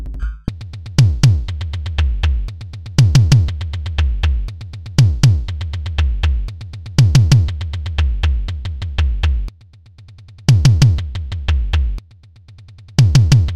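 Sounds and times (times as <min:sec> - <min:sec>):
twisted kick drum hits: 0:01.0 - 0:09.5, 0:10.5 - 0:12.0, 0:13.0 - 0:13.5.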